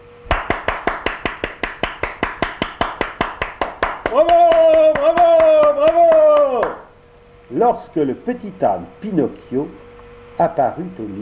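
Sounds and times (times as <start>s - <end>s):
audience applause: 0.3s - 6.9s
speech: 4.1s - 4.4s, 7.5s - 9.8s, 10.4s - 11.2s.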